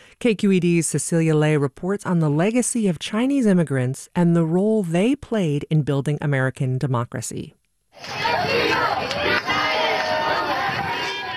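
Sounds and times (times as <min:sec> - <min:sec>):
speech: 0:00.2 - 0:09.1
supporters cheering and shouting outside the Supreme Court: 0:08.0 - 0:11.3.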